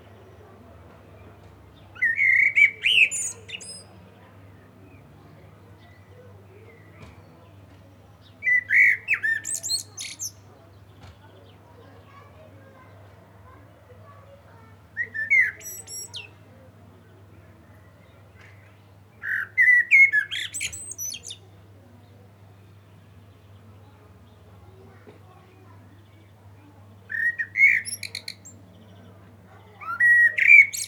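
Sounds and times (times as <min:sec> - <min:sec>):
Common blackbird singing: 0:02.0 - 0:03.9, 0:08.4 - 0:10.4, 0:15.0 - 0:16.4, 0:19.2 - 0:21.4, 0:27.1 - 0:28.6, 0:29.8 - 0:30.8.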